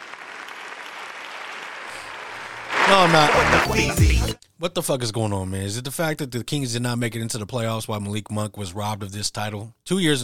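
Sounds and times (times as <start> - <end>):
hand clapping: 0.0 - 4.2
speech: 2.9 - 10.2.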